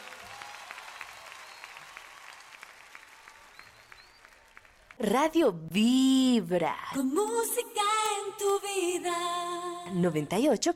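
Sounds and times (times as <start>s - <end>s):
crowd applauding: 0.0s - 5.0s
speech: 5.0s - 10.7s.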